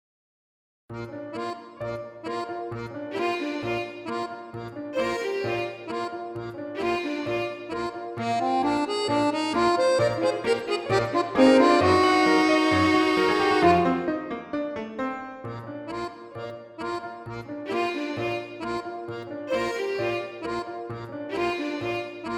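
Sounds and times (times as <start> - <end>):
violin trio: 3.0 - 14.4, 16.8 - 22.3.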